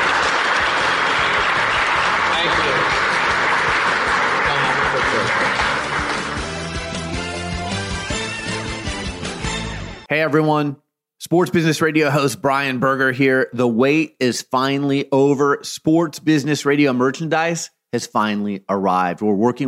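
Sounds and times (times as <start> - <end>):
crowd applauding: 0.0 - 8.0
music: 0.0 - 10.2
speech: 10.2 - 19.6.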